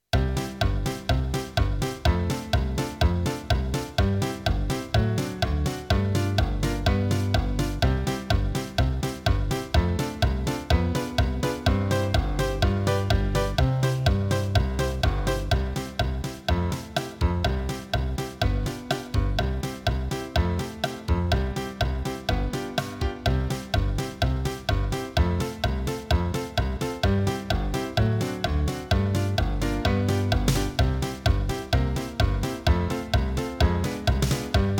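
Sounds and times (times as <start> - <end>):
encore piano piece: 0.0 - 34.7.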